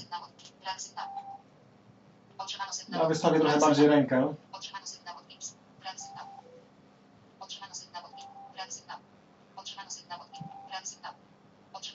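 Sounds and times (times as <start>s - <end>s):
speech: 0.1s - 1.2s, 2.4s - 5.6s
GPS device satellite signal notification beeps: 1.0s - 1.4s, 5.9s - 6.6s, 8.1s - 8.6s, 10.4s - 10.8s.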